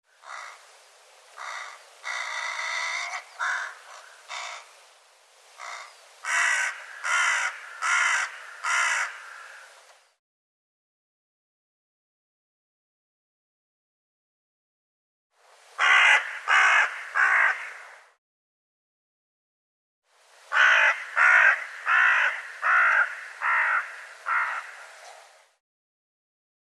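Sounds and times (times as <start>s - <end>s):
bird cawing: 0.2s - 0.6s, 1.4s - 4.7s, 5.6s - 9.8s, 15.8s - 18.0s, 20.5s - 25.2s.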